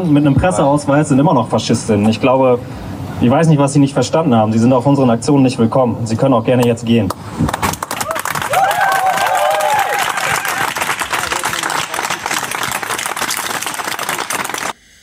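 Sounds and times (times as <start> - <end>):
speech: 0.0 - 7.6
audience clapping: 7.4 - 14.8.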